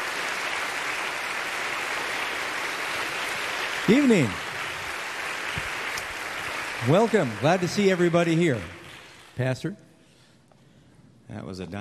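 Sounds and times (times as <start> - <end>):
evening audience applause welcoming a speaker: 0.0 - 9.3
speech: 3.9 - 4.4, 6.8 - 8.8, 9.4 - 9.8, 11.3 - 11.7.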